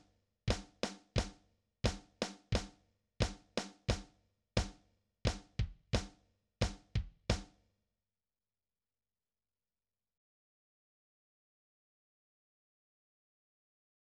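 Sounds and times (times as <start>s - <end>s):
drums warming up: 0.5s - 2.7s, 3.2s - 7.5s.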